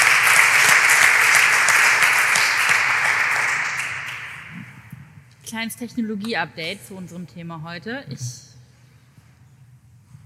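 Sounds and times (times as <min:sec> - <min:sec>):
audience clapping: 0:00.0 - 0:04.9
speech: 0:05.5 - 0:08.5.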